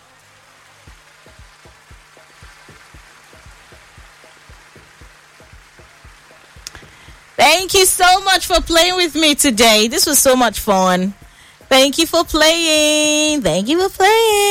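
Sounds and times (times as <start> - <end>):
round of applause: 0.0 - 7.7
speech: 7.4 - 14.4.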